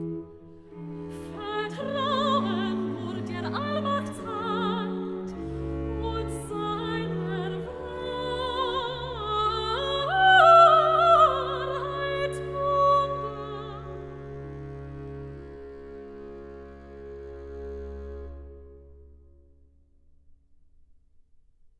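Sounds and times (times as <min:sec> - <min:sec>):
cantata recitative: 0:00.0 - 0:15.0.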